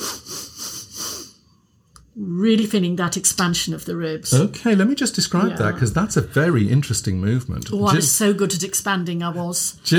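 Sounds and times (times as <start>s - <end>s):
sniffing breaths in through the nose, breathing exercise: 0.0s - 1.5s
speech: 2.2s - 9.9s.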